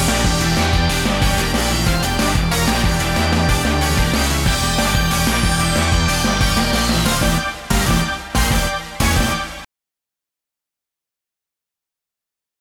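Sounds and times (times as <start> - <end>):
battle background music: 0.0 - 9.7.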